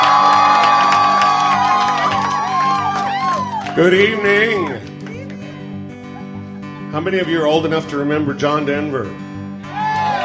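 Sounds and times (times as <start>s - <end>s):
audience cheering and whooping to welcome a comedian on stage: 0.0s - 4.8s, 9.6s - 10.2s
speech: 3.8s - 4.9s, 6.9s - 9.2s.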